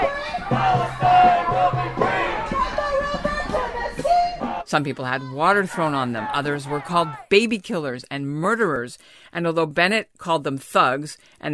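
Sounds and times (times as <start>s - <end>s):
protest crowd chanting: 0.0s - 7.3s
speech: 4.7s - 11.5s.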